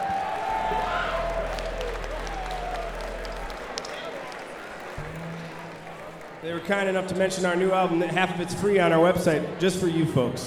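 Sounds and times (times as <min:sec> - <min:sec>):
thin descending whistle-like tone: 0:00.0 - 0:05.5
low hum: 0:00.0 - 0:06.4
audience applause: 0:00.0 - 0:07.4
crowd noise: 0:00.0 - 0:10.4
speech: 0:06.5 - 0:10.4.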